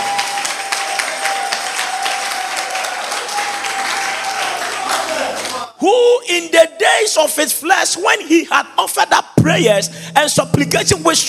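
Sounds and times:
audience clapping: 0:00.0 - 0:05.8
speech: 0:05.8 - 0:11.2.

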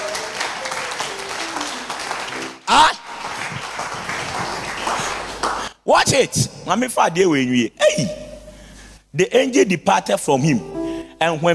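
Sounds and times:
audience clapping: 0:00.0 - 0:05.8
speech: 0:02.7 - 0:03.0, 0:05.9 - 0:08.2, 0:09.2 - 0:11.5.

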